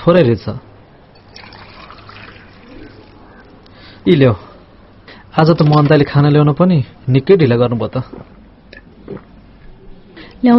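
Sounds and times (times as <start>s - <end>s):
speech: 0.0s - 0.7s, 4.0s - 4.5s, 5.4s - 8.4s, 9.1s - 9.3s
hot water pouring from a thermos: 1.2s - 3.3s.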